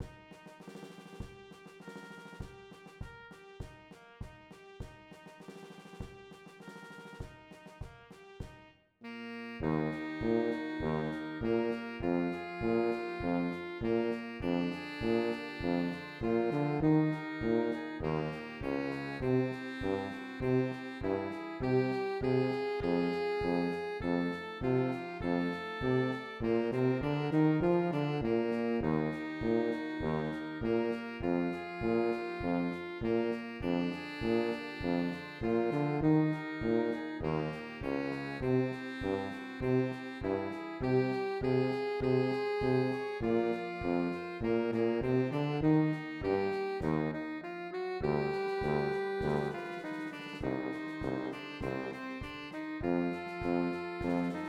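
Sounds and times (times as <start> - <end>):
alto saxophone: 0.0 - 54.4.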